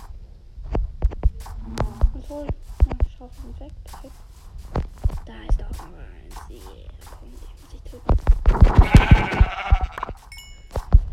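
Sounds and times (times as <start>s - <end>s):
thumping hits: 0.7s - 11.1s
speech: 1.7s - 4.4s, 5.3s - 9.9s
sheep bleating in a video game: 8.8s - 10.2s
short high chimes: 10.3s - 10.8s.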